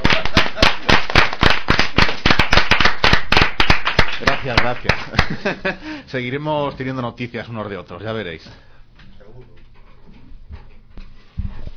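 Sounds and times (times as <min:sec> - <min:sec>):
applause: 0:00.0 - 0:05.4
speech: 0:04.5 - 0:08.7.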